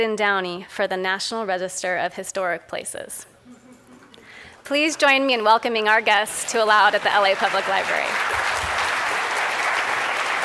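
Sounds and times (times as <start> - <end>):
speech: 0.0 - 3.3, 4.6 - 8.5
audience cheering: 4.7 - 10.4.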